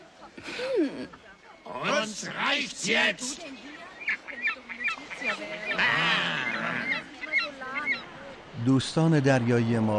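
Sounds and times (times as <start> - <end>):
speech: 0.3 - 3.9, 5.2 - 6.4, 8.6 - 9.9
cartoon seagull squawking: 4.1 - 8.1.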